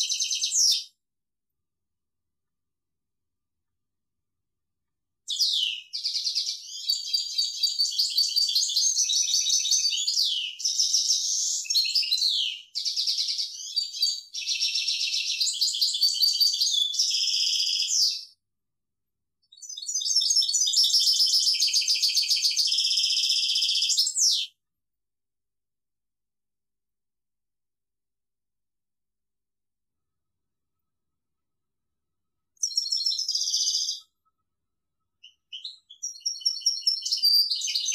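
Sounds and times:
European goldfinch song: 0.0 - 0.9, 5.3 - 18.4, 19.5 - 24.6, 32.6 - 34.4, 35.2 - 37.9.

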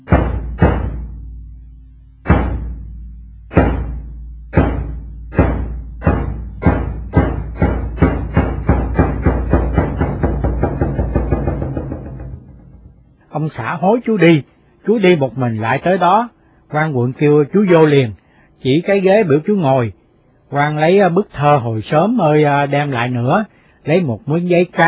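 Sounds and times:
deep drum struck to announce the afternoon audience: 0.0 - 1.6, 2.2 - 13.2
speech: 13.5 - 24.8.

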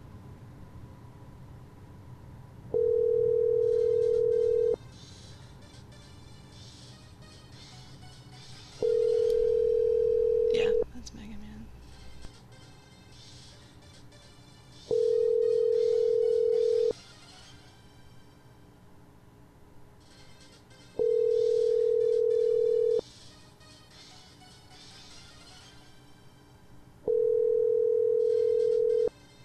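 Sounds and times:
phone call ringtone with video game tune: 2.8 - 4.8, 8.8 - 10.8, 14.9 - 17.0, 21.0 - 23.0, 27.1 - 29.1.

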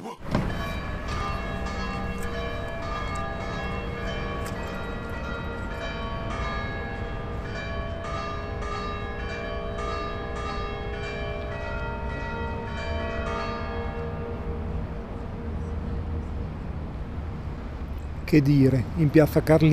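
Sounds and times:
church bell ringing: 0.4 - 17.0
speech: 18.3 - 19.7.

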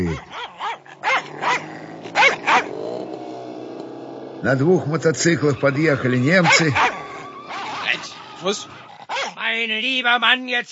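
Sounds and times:
dogs barking: 0.0 - 3.2, 5.4 - 9.4
dogs growling: 0.0 - 9.4
speech: 4.4 - 6.9, 8.4 - 8.8, 9.6 - 10.6.

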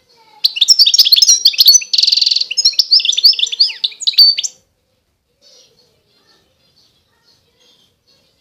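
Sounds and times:
wild European goldfinch singing: 0.4 - 4.6.

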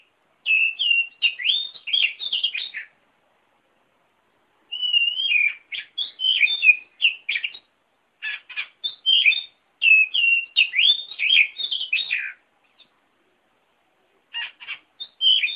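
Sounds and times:
oriental magpie-robin song: 0.4 - 2.9, 4.7 - 12.4, 14.3 - 15.5.

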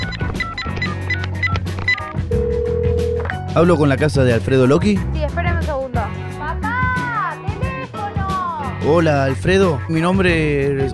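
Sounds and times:
short electronic phone keypad beeps dialing a number: 0.0 - 3.3
steady low phone ringing tone: 0.0 - 3.5
busy music: 0.0 - 10.9
speech: 3.6 - 5.4, 8.8 - 10.9.

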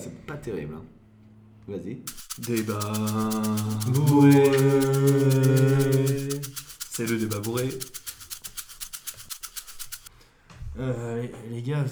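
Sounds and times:
speech: 0.3 - 1.0, 1.6 - 8.1, 10.8 - 11.9
toothbrush scrubbing in back-and-forth strokes: 2.1 - 10.1.

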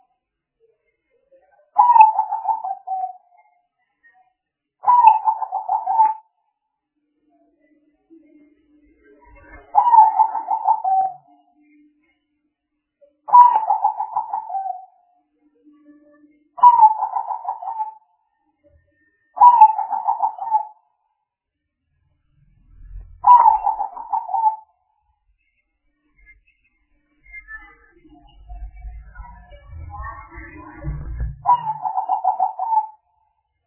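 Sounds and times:
spotted dove cooing: 1.8 - 3.1, 4.8 - 6.2, 9.8 - 11.2, 13.3 - 14.8, 16.6 - 18.0, 19.4 - 20.8, 23.2 - 24.6, 31.4 - 33.0.

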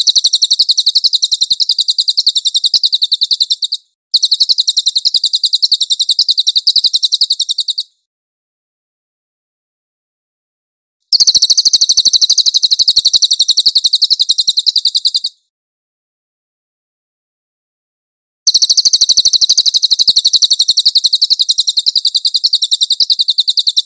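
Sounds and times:
cililin singing a high dense rattle: 0.0 - 8.0, 11.1 - 15.5, 18.5 - 23.8.

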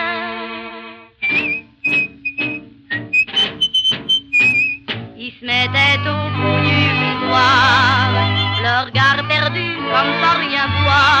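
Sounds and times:
man whistling a jaunty refrain in a bistro: 1.2 - 4.8, 8.2 - 8.7
instrumental backing music: 1.2 - 11.1.

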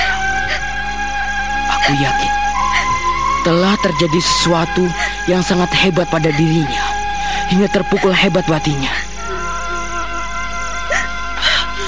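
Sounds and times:
sustained musical tones: 0.0 - 11.8
woman crying in short whimpering sobs: 1.7 - 3.2, 4.6 - 10.2, 10.8 - 11.8
speech: 1.9 - 6.8, 7.5 - 9.0.

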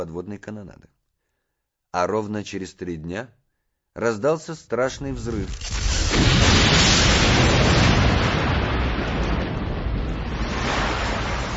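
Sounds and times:
speech: 0.0 - 1.0, 1.9 - 3.4, 4.0 - 6.3
sea water rushing in: 6.0 - 11.5
waves: 10.3 - 11.5.

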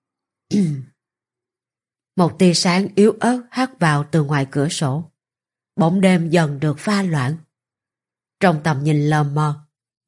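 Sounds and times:
speech: 0.5 - 0.9, 2.2 - 5.1, 5.8 - 7.4, 8.4 - 10.0
throat clearing: 0.5 - 1.0.

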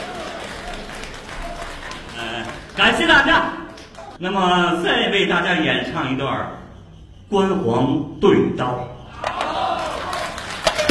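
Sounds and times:
audience applause at a Chinese opera and folk performance: 0.0 - 4.2, 9.4 - 10.8
speech: 2.8 - 3.6, 4.2 - 6.6, 7.3 - 9.0.

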